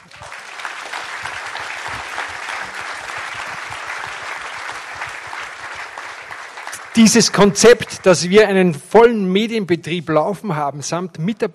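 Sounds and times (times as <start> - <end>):
audience applause: 0.0 - 8.6
speech: 7.0 - 11.5.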